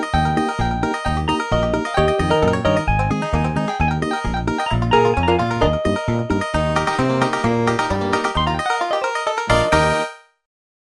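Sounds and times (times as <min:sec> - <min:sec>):
MIDI holiday country music: 0:00.1 - 0:09.8.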